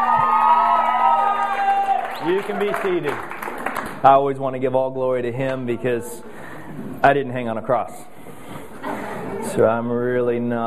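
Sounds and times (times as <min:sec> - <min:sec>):
audience hand clapping: 0:00.0 - 0:04.2
speech: 0:02.2 - 0:08.1, 0:09.6 - 0:10.6.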